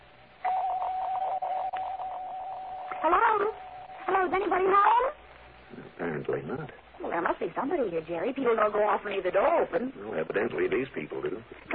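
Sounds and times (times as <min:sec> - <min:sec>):
electric doorbell ringing: 0:00.4 - 0:04.2
speech: 0:03.0 - 0:05.2, 0:06.0 - 0:11.7.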